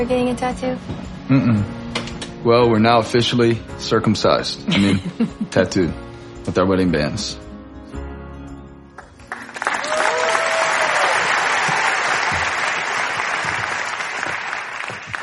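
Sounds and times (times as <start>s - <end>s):
speech: 0.0s - 1.8s, 2.4s - 7.4s
crowd applause: 9.3s - 15.2s
faint cheers: 9.8s - 12.0s.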